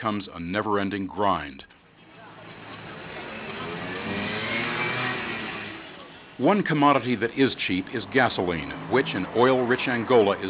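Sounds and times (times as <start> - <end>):
speech: 0.0 - 1.7, 6.4 - 10.4
car engine revving in city traffic in Luanda, Angola: 2.3 - 10.4.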